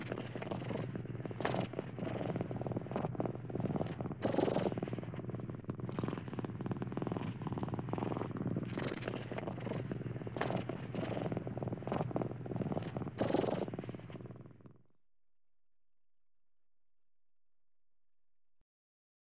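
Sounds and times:
cat purring: 0:00.0 - 0:15.0.

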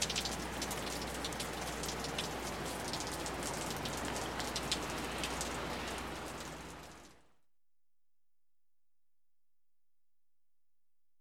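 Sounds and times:
streams of water after rain: 0:00.0 - 0:07.2.

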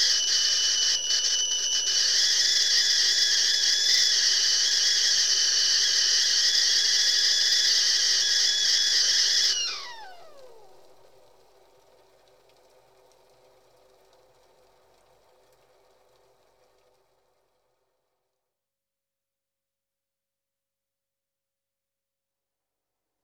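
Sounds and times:
kettle whistling: 0:00.0 - 0:12.1.

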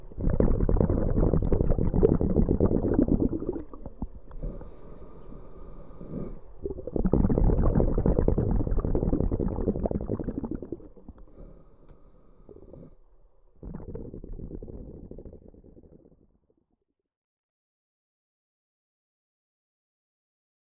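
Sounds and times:
scuba diver breathing while diving: 0:00.1 - 0:16.1.

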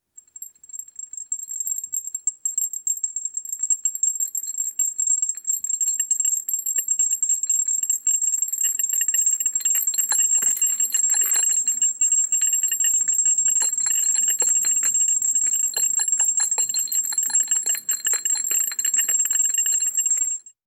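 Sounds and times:
chandelier shaking: 0:09.0 - 0:20.2.

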